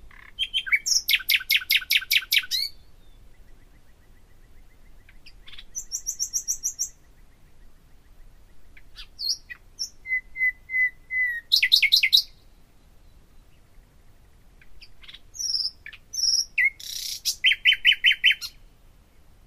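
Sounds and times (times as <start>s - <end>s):
common nightingale singing: 0.4s - 4.9s, 5.5s - 7.0s, 9.0s - 12.4s, 15.0s - 18.6s.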